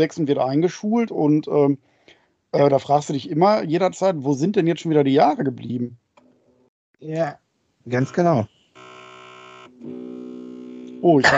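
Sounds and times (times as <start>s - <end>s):
speech: 0.0s - 1.9s, 2.5s - 6.0s, 7.0s - 8.5s, 11.0s - 11.3s
camera humming while reinitialising: 8.8s - 11.3s.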